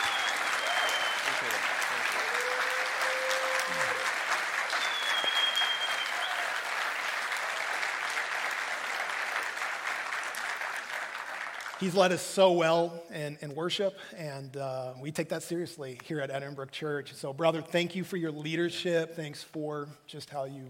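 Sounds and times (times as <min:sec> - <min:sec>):
audience applause: 0:00.0 - 0:12.1
speech: 0:11.8 - 0:20.6.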